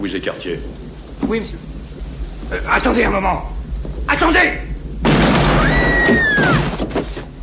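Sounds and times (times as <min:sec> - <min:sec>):
speech: 0:00.0 - 0:01.7, 0:02.5 - 0:04.7, 0:05.6 - 0:07.0
gunshot fired at an unarmed man in a western film saloon: 0:05.0 - 0:06.9.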